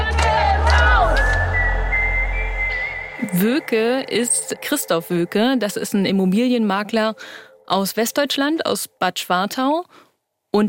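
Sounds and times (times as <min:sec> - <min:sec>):
crowd chanting a protest slogan: 0:00.0 - 0:05.3
speech: 0:03.4 - 0:10.6.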